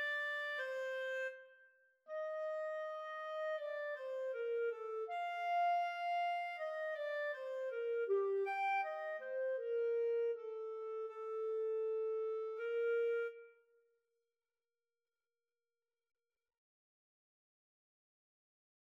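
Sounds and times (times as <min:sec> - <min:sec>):
clarinet in a duet: 0:00.0 - 0:13.7.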